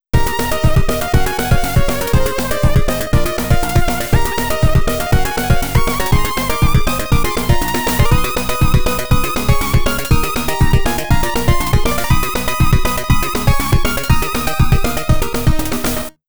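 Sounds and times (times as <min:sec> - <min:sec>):
power up chiptune sound from a YM2203 sound chip: 0:00.2 - 0:16.1.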